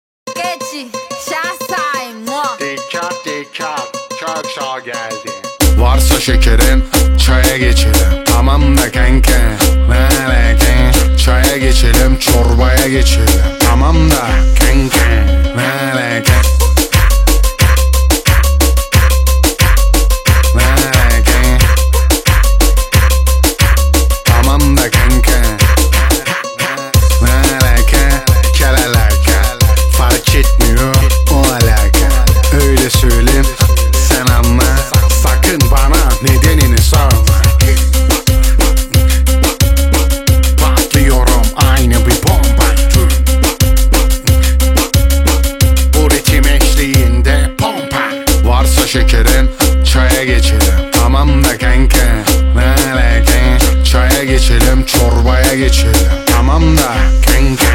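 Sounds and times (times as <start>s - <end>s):
Turkish trap music: 0.3s - 57.7s.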